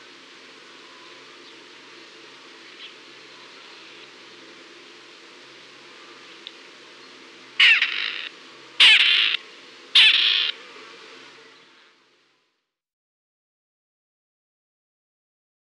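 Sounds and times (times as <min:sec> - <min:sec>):
Perdix perdix calling: 0:07.6 - 0:09.4, 0:10.0 - 0:10.6.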